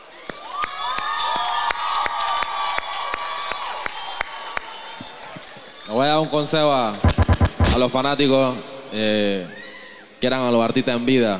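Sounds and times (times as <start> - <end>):
crowd cheering and whoops: 0.0 - 5.9
audience clapping after a performance: 0.3 - 6.3
speech: 5.9 - 7.1, 7.7 - 9.6, 10.2 - 11.3.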